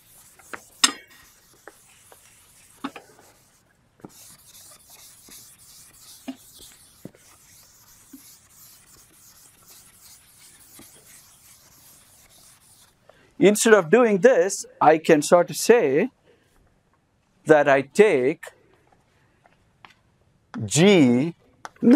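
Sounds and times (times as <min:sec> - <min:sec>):
eraser wiping away part of the writing on a board: 0:00.0 - 0:13.0
speech: 0:13.4 - 0:16.2, 0:17.5 - 0:18.5, 0:20.7 - 0:21.9.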